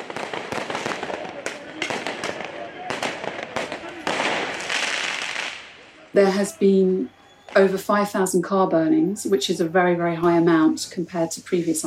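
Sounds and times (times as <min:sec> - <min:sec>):
firework mortars going off with sharp bangs and crackling bursts: 0:00.0 - 0:06.5
people shouting: 0:00.0 - 0:07.7
constant roar of crowd noise: 0:00.0 - 0:07.8
speech: 0:06.1 - 0:11.8.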